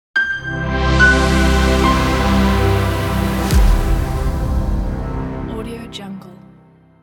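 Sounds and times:
dreamy elegant logo jingle: 0:00.2 - 0:05.5.

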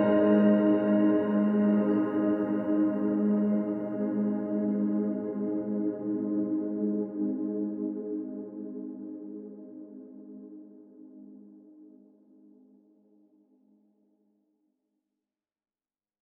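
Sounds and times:
background soundscape: 0:00.0 - 0:07.4.

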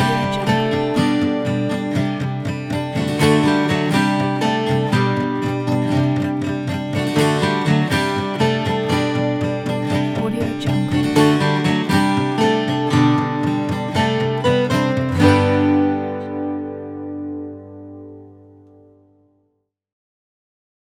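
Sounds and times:
acoustic guitar rock music: 0:00.0 - 0:19.3.

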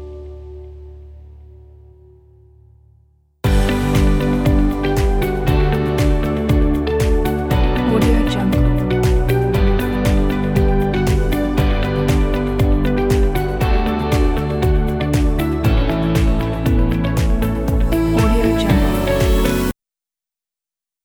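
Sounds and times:
inspiring innovation technology motion music: 0:03.5 - 0:19.7.

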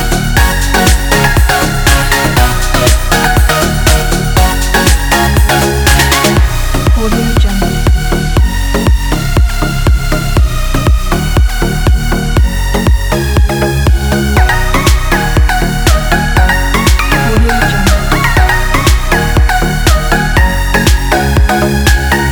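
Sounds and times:
upbeat pop music: 0:00.0 - 0:22.2.

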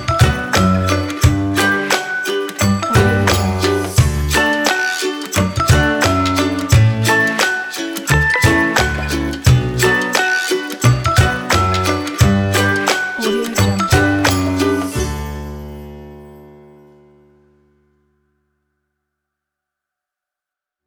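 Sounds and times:
happy ukulele music: 0:00.0 - 0:16.0.

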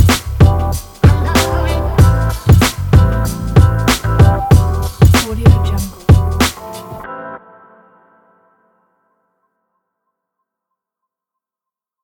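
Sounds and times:
hip hop music: 0:00.0 - 0:08.8.

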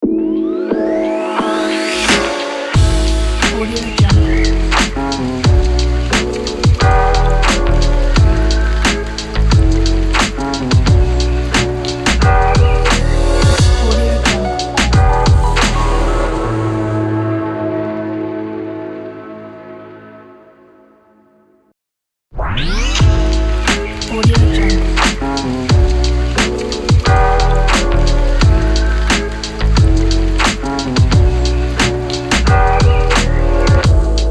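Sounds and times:
lo-fi intro and outro music ident: 0:00.4 - 0:18.9, 0:23.0 - 0:34.2.

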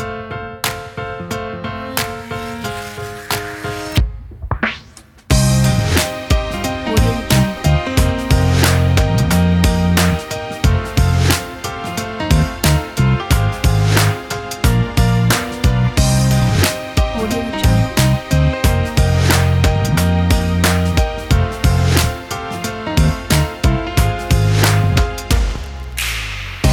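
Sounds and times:
pop jazz rock music: 0:00.0 - 0:26.7.

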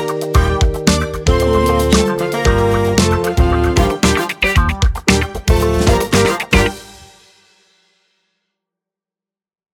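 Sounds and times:
funk music: 0:00.0 - 0:07.7.

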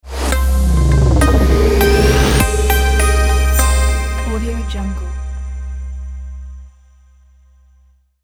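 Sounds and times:
minimal tech logo jingle: 0:00.2 - 0:06.0.

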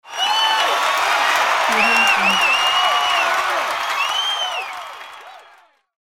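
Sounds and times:
crowd cheering: 0:00.0 - 0:06.0.

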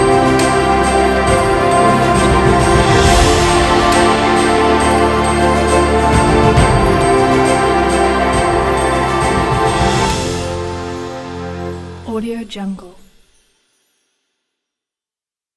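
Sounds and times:
epic award ceremony winner music: 0:00.0 - 0:12.1.

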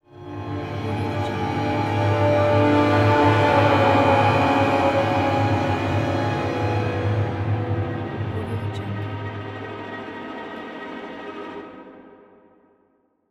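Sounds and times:
horror stab: 0:01.4 - 0:09.5.

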